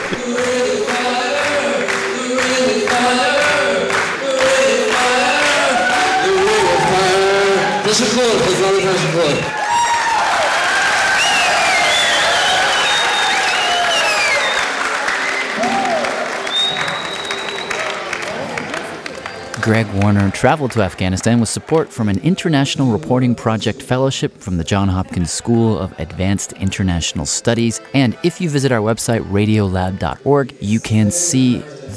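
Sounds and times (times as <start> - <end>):
concert crowd clapping: 0.0 - 22.9
large concert crowd cheering and whooping: 5.5 - 18.9
speech: 19.7 - 31.9.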